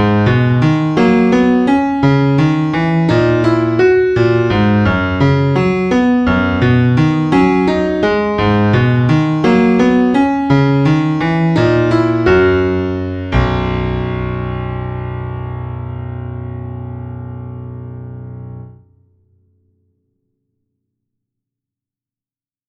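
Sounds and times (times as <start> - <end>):
waltz played on piano: 0.0 - 18.8.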